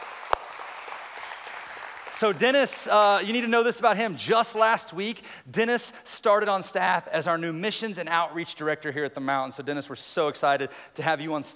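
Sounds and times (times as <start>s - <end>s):
crowd applause: 0.0s - 2.8s
speech: 2.2s - 11.5s.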